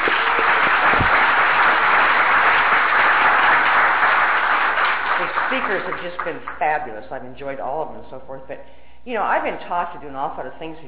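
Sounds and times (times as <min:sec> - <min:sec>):
crowd applauding: 0:00.0 - 0:06.6
speech: 0:05.7 - 0:10.8.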